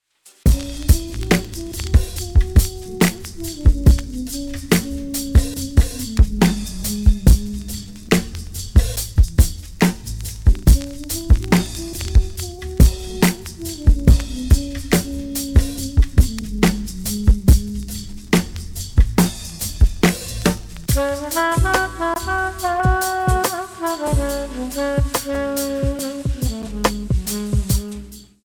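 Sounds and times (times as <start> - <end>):
jazz music: 0.4 - 28.4.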